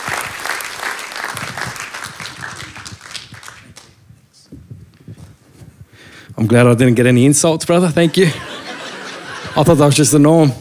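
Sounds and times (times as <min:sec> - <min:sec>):
church congregation applauding to welcome a preacher: 0:00.0 - 0:03.9
speech: 0:06.4 - 0:08.5, 0:09.6 - 0:10.5
laughter: 0:08.0 - 0:10.2.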